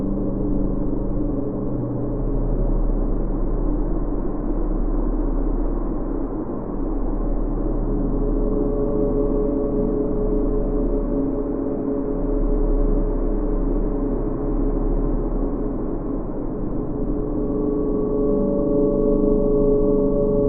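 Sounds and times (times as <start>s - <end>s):
cold dark sinister wind: 0.0s - 20.4s
sinister LFE drone: 0.0s - 20.4s.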